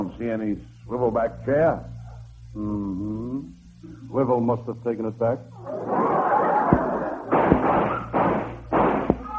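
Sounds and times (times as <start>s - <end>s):
speech: 0.2s - 6.3s
gunshots outside a door: 6.7s - 9.3s.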